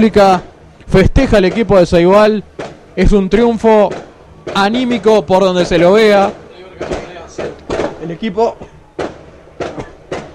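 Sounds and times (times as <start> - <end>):
speech: 0.0 - 7.5, 8.1 - 8.7
fireworks being set off by fans: 2.6 - 10.3.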